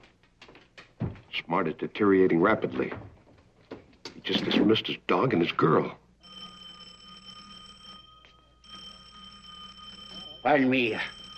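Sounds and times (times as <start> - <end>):
speech: 1.5 - 3.1, 4.3 - 6.0, 10.5 - 11.2
phone ringing inside a shoe: 6.2 - 11.3.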